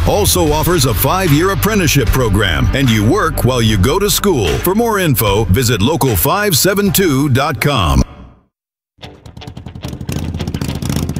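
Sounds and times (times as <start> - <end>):
speech: 0.1 - 8.2
motorcycle engine starting and revving: 9.0 - 11.1.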